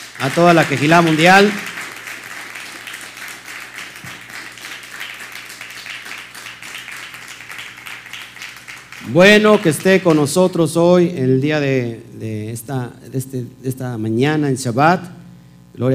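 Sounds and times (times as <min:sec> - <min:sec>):
audience applause: 0:00.0 - 0:10.4
speech: 0:00.2 - 0:01.7, 0:09.1 - 0:15.2, 0:15.8 - 0:15.9.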